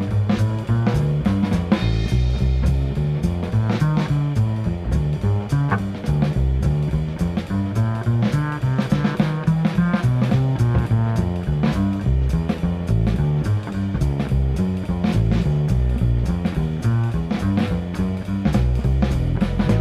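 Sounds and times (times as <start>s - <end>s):
jazz piano playing rhythm changes: 0.0s - 11.5s
jazz guitar playing rhythm changes: 0.0s - 19.7s.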